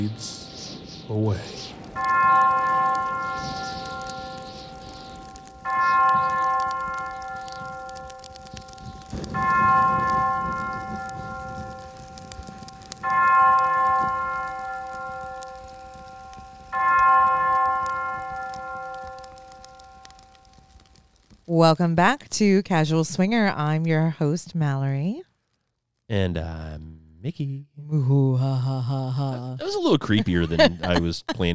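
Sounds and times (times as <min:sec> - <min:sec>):
speech: 0:00.0 - 0:00.4, 0:01.1 - 0:02.5, 0:21.5 - 0:25.3, 0:26.1 - 0:31.5
clock chiming with deep resonant bell strokes: 0:01.7 - 0:20.8
laughter: 0:28.2 - 0:31.5.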